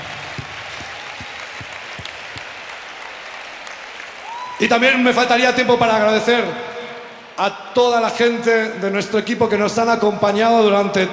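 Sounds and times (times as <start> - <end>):
audience applause: 0.0 - 5.4
speech: 4.6 - 6.7, 7.4 - 11.1.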